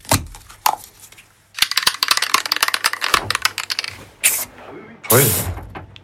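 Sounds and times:
spray paint can being shaken: 0:01.6 - 0:04.4
speech: 0:05.1 - 0:05.6.

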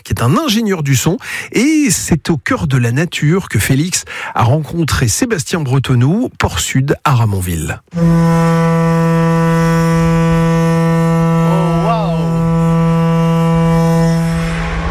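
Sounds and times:
speech: 0:00.1 - 0:08.9
giant foghorn 6.50 m long blasting: 0:07.9 - 0:14.8.

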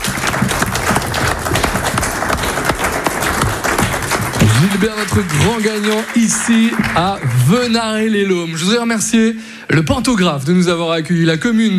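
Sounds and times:
crowd applauding: 0:00.0 - 0:08.4
speech: 0:04.8 - 0:11.7.

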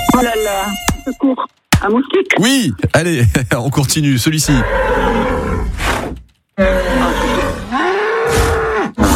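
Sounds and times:
speech: 0:00.2 - 0:05.5, 0:06.6 - 0:07.3
Camargue bull bellowing: 0:04.5 - 0:09.1.

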